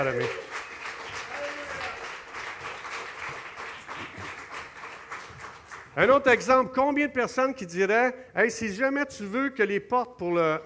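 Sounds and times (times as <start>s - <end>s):
speech: 0.0s - 0.5s, 6.0s - 10.6s
crowd applauding musicians in a large room: 0.0s - 6.3s.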